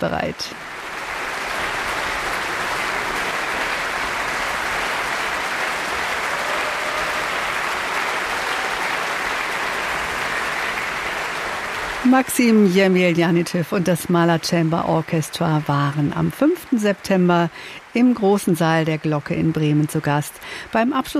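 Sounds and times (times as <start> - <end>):
speech: 0.0 - 0.7, 12.0 - 21.1
concert audience applauding and cheering: 0.4 - 21.1.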